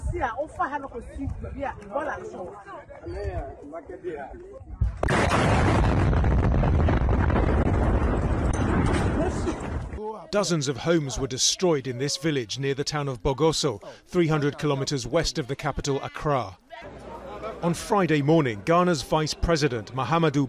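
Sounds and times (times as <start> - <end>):
speech: 0.2 - 6.2, 8.8 - 17.0, 17.6 - 20.4
explosion of truck carrying explosives to a gold mine: 4.8 - 10.0.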